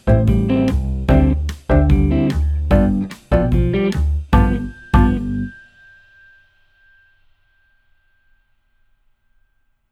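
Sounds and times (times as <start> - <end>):
jazz backing track: 0.0 - 5.5.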